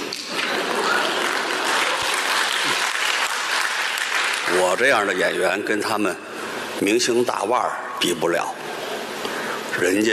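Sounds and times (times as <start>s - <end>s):
audience applauding: 0.0s - 5.6s
speech: 4.6s - 8.6s, 9.8s - 10.1s.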